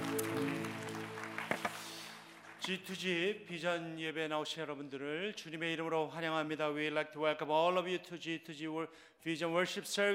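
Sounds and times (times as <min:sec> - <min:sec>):
sustained keyboard chord: 0:00.0 - 0:02.4
audience clapping: 0:00.0 - 0:03.4
speech: 0:02.6 - 0:10.1.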